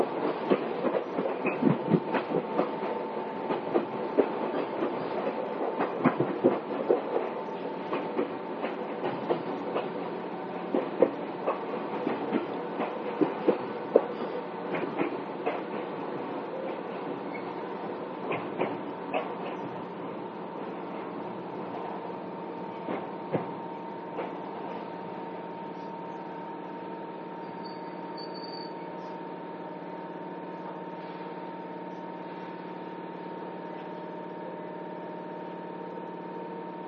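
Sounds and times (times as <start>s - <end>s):
Izukyu 8000 series train low rumble: 0.0s - 36.8s.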